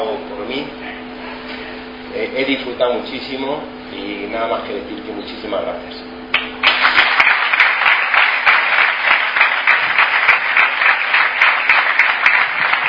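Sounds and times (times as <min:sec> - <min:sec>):
speech: 0:02.3 - 0:06.1
audience applause: 0:06.4 - 0:12.8.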